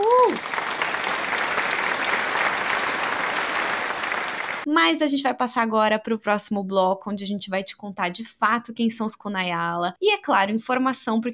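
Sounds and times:
applause: 0:00.0 - 0:04.7
speech: 0:04.8 - 0:11.3.

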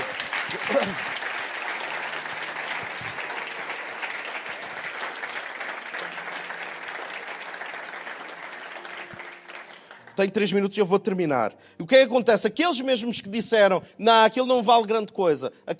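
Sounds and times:
audience applause: 0:00.0 - 0:10.6
speech: 0:00.5 - 0:01.2, 0:10.2 - 0:15.7.

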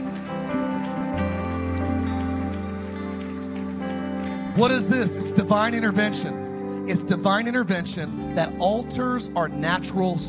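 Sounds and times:
audience clapping: 0:00.0 - 0:06.4
sustained musical chords: 0:00.0 - 0:10.2
speech: 0:04.6 - 0:10.2.

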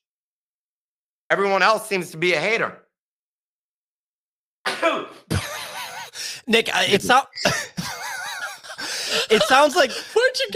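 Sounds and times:
speech: 0:01.3 - 0:02.8, 0:06.5 - 0:07.7, 0:09.2 - 0:10.5
sneeze: 0:04.7 - 0:05.3
laughter: 0:05.3 - 0:10.5.

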